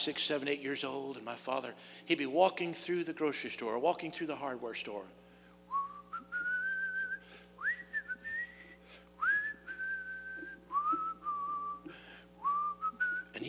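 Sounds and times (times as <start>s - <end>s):
speech: 0.0s - 5.2s
low hum: 0.0s - 13.4s
man whistling a tune: 5.7s - 13.4s.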